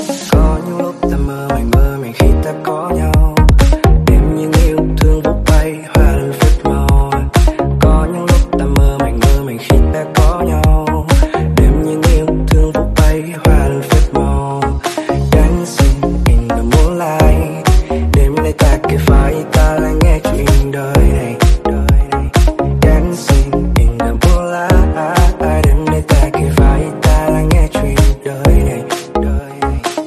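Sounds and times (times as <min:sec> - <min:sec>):
remix music: 0:00.0 - 0:30.0.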